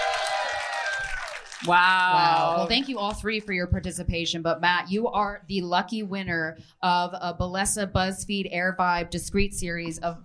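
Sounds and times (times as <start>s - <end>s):
crowd noise: 0.0s - 3.1s
live audience clapping: 0.0s - 3.5s
speech: 1.6s - 10.2s.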